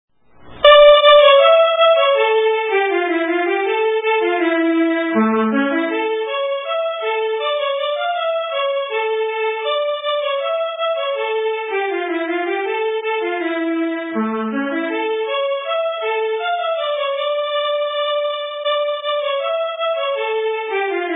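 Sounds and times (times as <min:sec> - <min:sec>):
polska dance tune: 0:00.4 - 0:21.1.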